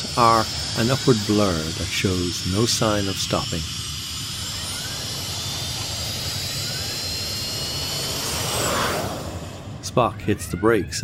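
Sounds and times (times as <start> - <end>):
rocket booster blast roaring: 0.0 - 10.2
speech: 0.2 - 3.8, 10.0 - 11.0.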